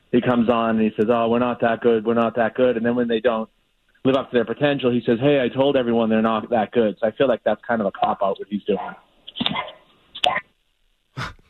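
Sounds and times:
speech: 0:00.1 - 0:09.7
dog wanting to be let out barking: 0:09.5 - 0:09.8.

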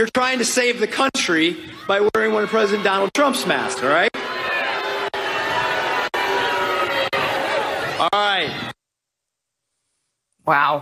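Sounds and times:
speech: 0:00.0 - 0:04.5, 0:10.4 - 0:10.8
crowd booing: 0:01.5 - 0:08.8.

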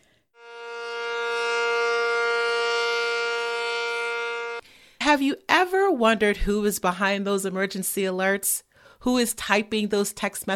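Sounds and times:
emergency warning siren in Contra Costa: 0:00.4 - 0:04.6
speech: 0:05.2 - 0:10.5.

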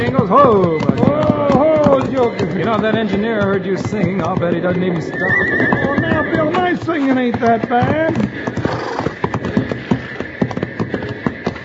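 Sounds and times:
horse hooves clopping: 0:00.0 - 0:11.6
speech: 0:00.2 - 0:01.2, 0:02.3 - 0:08.8
horse whinnying: 0:00.3 - 0:07.2, 0:08.2 - 0:09.3.

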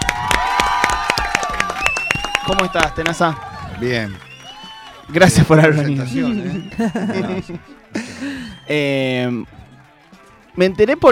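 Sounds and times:
audience clapping: 0:00.0 - 0:11.1
cheering voices: 0:00.0 - 0:11.1
high whistle-like tones: 0:01.7 - 0:02.9, 0:03.8 - 0:07.3, 0:08.1 - 0:09.3
speech: 0:02.5 - 0:04.3, 0:05.1 - 0:09.6, 0:10.6 - 0:11.1
laughter: 0:05.4 - 0:08.7.

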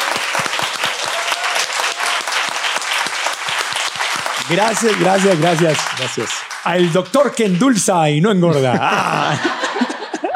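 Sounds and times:
audience applause: 0:00.0 - 0:10.2
speech: 0:04.5 - 0:09.8
laughter: 0:08.2 - 0:10.3.

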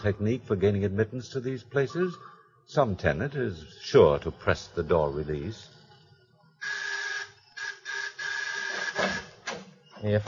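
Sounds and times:
speech: 0:00.0 - 0:05.8, 0:10.0 - 0:10.2
electric doorbell buzzers: 0:06.6 - 0:09.4.

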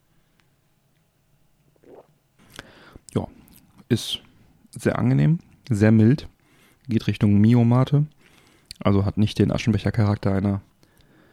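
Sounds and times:
person slurping and swallowing Bionade Mate pur drink: 0:01.8 - 0:02.6
speech: 0:03.1 - 0:06.3, 0:06.9 - 0:08.2, 0:08.8 - 0:10.7.

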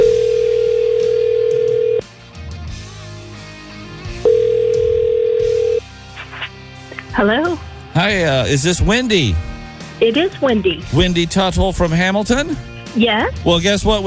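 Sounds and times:
telephone ringing: 0:00.0 - 0:02.0, 0:04.2 - 0:05.8
speech: 0:07.2 - 0:14.0.

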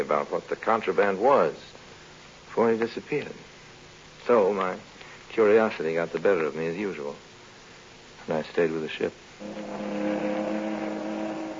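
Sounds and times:
speech: 0:00.0 - 0:01.8, 0:02.6 - 0:03.5, 0:04.2 - 0:07.3, 0:08.2 - 0:10.6
speedboat engine as the boat comes alongside a ship on the port bow: 0:09.4 - 0:11.5.

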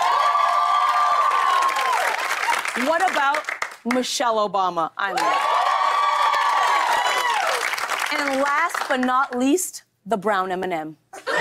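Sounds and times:
audience applause and cheering: 0:00.0 - 0:03.8, 0:05.2 - 0:09.0
speech: 0:02.8 - 0:05.5, 0:08.1 - 0:11.3.

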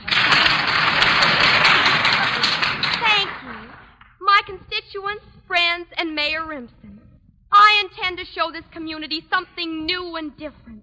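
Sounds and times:
audience applause: 0:00.0 - 0:04.0
speech: 0:06.2 - 0:10.8.

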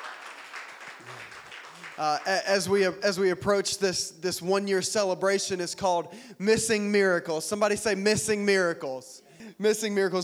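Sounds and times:
audience applause: 0:00.0 - 0:02.4
speech: 0:02.0 - 0:10.2.

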